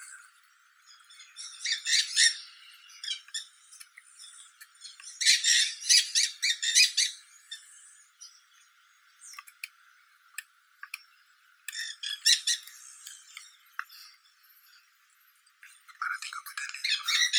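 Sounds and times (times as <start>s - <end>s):
dusky-headed parakeet Aratinga weddellii calling: 0.0s - 8.6s, 10.9s - 14.7s, 15.9s - 17.3s.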